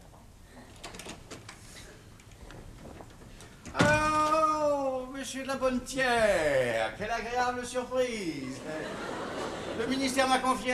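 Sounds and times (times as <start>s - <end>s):
door being opened: 2.3s - 4.5s
speech: 5.3s - 10.7s
laughter: 8.4s - 10.7s.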